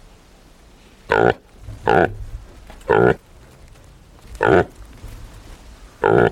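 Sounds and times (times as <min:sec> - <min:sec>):
reindeer calf grunting: 0:01.1 - 0:02.2, 0:02.8 - 0:03.2, 0:04.4 - 0:04.8, 0:06.0 - 0:06.3.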